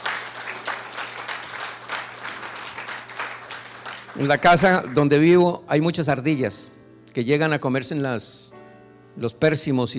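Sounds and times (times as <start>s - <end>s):
church congregation clapping in praise at a Spanish-language service: 0.0s - 5.5s
speech: 4.2s - 8.6s, 9.2s - 9.9s.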